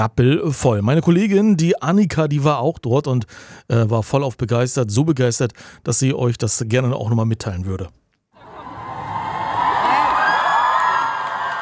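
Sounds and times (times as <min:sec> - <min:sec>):
speech: 0:00.0 - 0:08.0
crowd cheering at concert in Rostock: 0:08.4 - 0:11.5.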